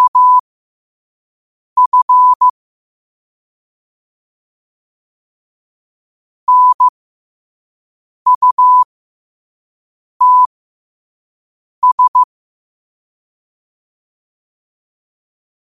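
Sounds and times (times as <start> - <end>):
morse code at 5 wpm: 0.0 - 0.4, 1.8 - 2.5, 6.5 - 6.9, 8.3 - 8.9, 10.2 - 10.5, 11.8 - 12.3.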